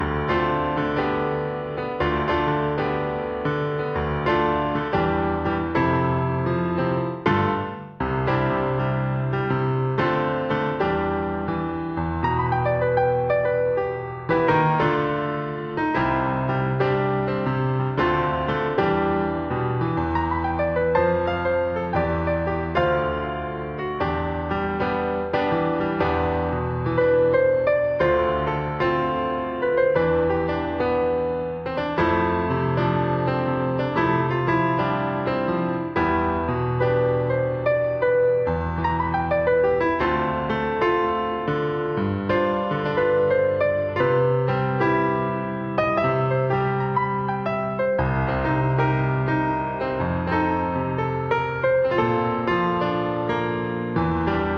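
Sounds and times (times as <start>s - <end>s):
Moroccan-style piano music: 0.0s - 54.5s.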